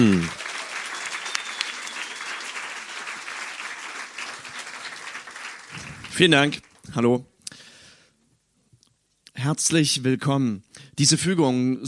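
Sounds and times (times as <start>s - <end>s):
speech: 0.0s - 0.4s, 6.2s - 7.3s, 9.4s - 11.8s
audience applause: 0.0s - 6.9s.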